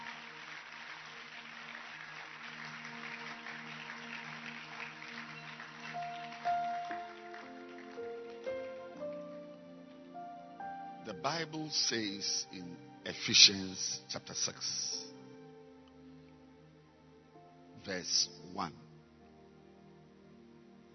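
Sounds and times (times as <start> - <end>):
audience clapping hands: 0.0 - 9.5
speech: 11.1 - 15.0, 17.8 - 18.8.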